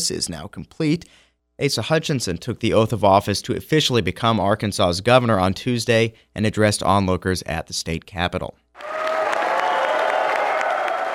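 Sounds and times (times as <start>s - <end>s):
speech: 0.0s - 9.0s
crowd clapping in the Arkansas House chamber welcoming Governor Asa Hutchinson: 8.8s - 11.1s.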